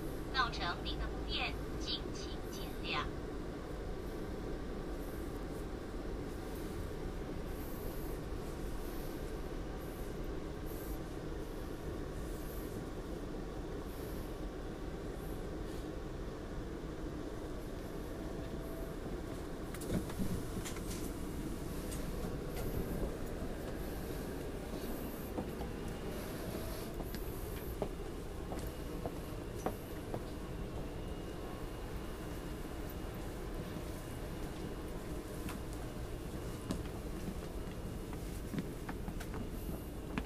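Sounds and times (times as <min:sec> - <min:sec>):
speech: 0:00.4 - 0:03.2
train running on rails: 0:01.7 - 0:40.2.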